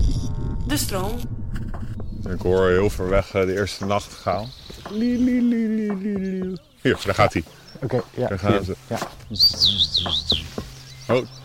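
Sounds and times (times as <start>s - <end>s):
speech: 0.7s - 1.4s, 2.2s - 10.4s, 11.1s - 11.4s
two small birds calling while flying over: 3.3s - 11.4s.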